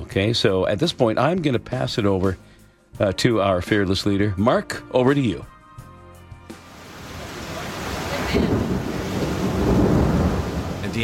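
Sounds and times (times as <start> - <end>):
speech: 0.2 - 5.5
rain in Mljet National Park, Croatia: 6.6 - 11.0
low rumbling thunder in Mljet National Park, Croatia: 7.3 - 11.0.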